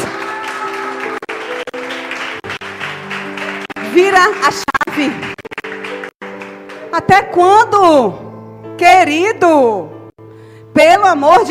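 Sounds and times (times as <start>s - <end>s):
audience applause: 0.0s - 6.9s
speech: 4.0s - 5.3s, 7.0s - 10.0s, 10.8s - 11.4s.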